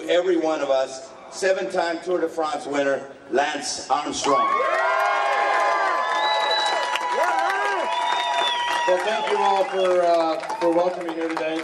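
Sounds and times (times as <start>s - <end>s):
speech: 0.1s - 5.2s, 8.9s - 11.6s
crowd cheering and whooping: 4.2s - 10.8s
large crowd applause: 4.5s - 11.6s.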